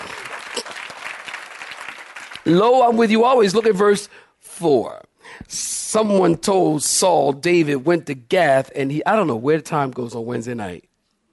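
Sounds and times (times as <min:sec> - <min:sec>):
audience clapping hands: 0:00.0 - 0:04.0
speech: 0:02.5 - 0:10.9.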